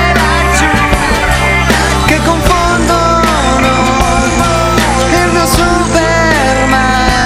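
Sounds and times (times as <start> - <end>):
ringtone: 0.2 - 7.2.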